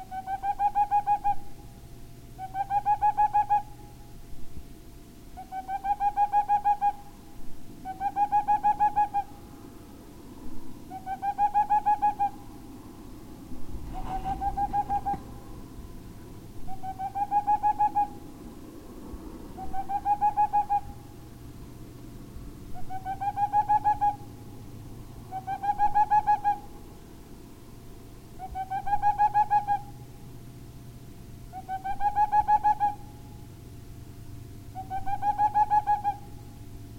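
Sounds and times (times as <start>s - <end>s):
boreal owl hooting: 0.0s - 1.7s, 2.4s - 4.1s, 5.4s - 7.2s, 7.8s - 9.5s, 10.8s - 12.6s, 13.8s - 15.7s, 16.6s - 18.3s, 19.6s - 21.3s, 22.7s - 24.4s, 25.2s - 26.8s, 28.4s - 30.1s, 31.5s - 33.5s, 34.7s - 36.6s
low steady hum: 0.0s - 36.9s.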